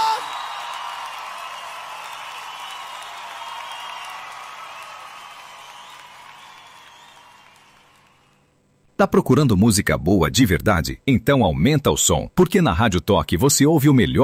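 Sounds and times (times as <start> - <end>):
audience clapping: 0.0 - 8.5
speech: 9.0 - 14.2.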